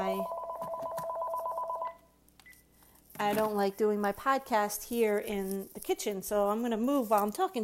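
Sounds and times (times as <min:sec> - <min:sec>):
phone ringing with two-tone electronic trill in a kitchen: 0:00.0 - 0:02.1
speech: 0:03.2 - 0:07.6.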